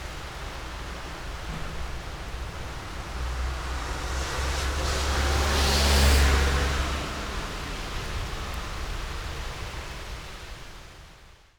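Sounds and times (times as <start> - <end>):
rain: 0.0 - 11.5
cars: 0.1 - 10.5.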